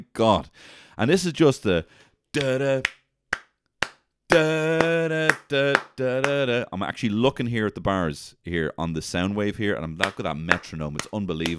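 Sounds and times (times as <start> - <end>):
speech: 0.1 - 3.0, 4.3 - 11.5
audience clapping out of sync: 2.4 - 6.4, 10.0 - 11.5.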